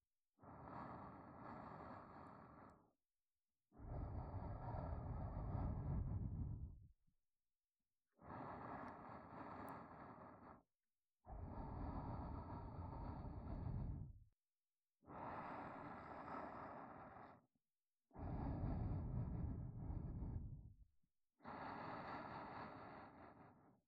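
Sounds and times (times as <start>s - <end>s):
soft breathing loop in the right ear: 0.4s - 2.9s, 3.8s - 6.8s, 8.2s - 10.7s, 11.3s - 14.2s, 15.0s - 17.5s, 18.1s - 20.8s, 21.4s - 23.8s.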